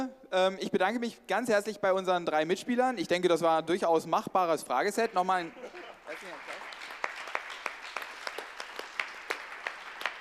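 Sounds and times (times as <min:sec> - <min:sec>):
speech: 0:00.3 - 0:06.6
audience applause: 0:05.1 - 0:10.2.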